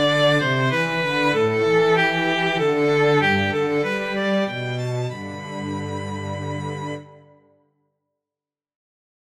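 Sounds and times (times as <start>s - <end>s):
cello and violin duet: 0.0s - 7.4s.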